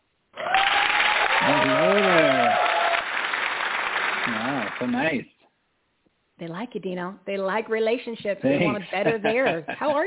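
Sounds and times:
crowd applause: 0.4 - 5.2
speech: 4.8 - 5.4, 6.4 - 10.0
laughter: 8.4 - 10.0.

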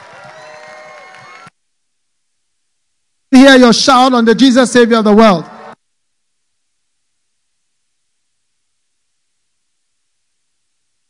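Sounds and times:
crowd clapping: 0.0 - 1.6
speech: 3.4 - 5.5.

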